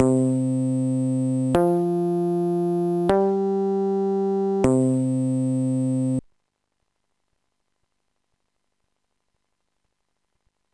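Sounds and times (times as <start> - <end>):
bass: 0.0 - 6.2.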